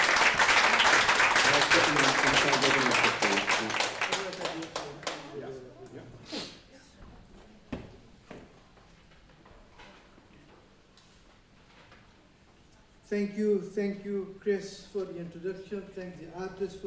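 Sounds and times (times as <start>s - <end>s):
conference audience applause greeting a keynote speaker: 0.0s - 5.6s
speech: 13.1s - 16.8s.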